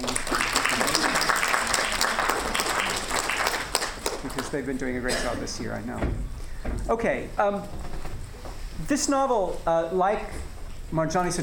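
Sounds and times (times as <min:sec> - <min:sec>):
audience clapping: 0:00.0 - 0:05.1
speech: 0:04.5 - 0:07.9, 0:08.9 - 0:11.4.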